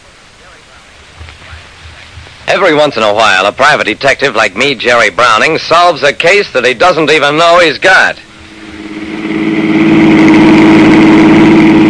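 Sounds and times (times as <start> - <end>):
car engine running: 0.8 - 6.7, 8.2 - 11.8
speech: 2.5 - 8.3.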